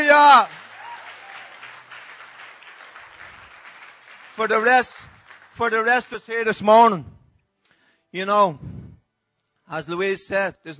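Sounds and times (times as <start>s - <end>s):
speech: 0.0s - 0.6s, 4.4s - 7.2s, 8.1s - 8.7s, 9.7s - 10.7s
audience clapping: 0.0s - 6.6s.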